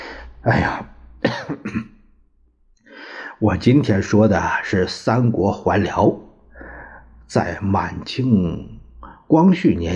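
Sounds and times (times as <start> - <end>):
speech: 0.4 - 0.9, 3.4 - 6.2, 7.3 - 9.9
man coughing: 1.2 - 2.1.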